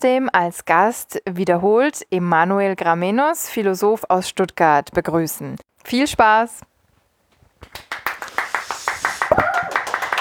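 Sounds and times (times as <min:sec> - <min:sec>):
speech: 0:00.0 - 0:06.7
audience applause: 0:07.8 - 0:10.1.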